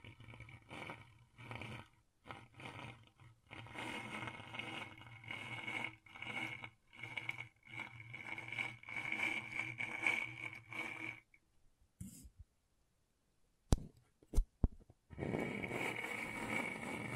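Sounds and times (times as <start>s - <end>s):
scratchboard being scraped: 0.0s - 11.2s, 15.1s - 17.1s.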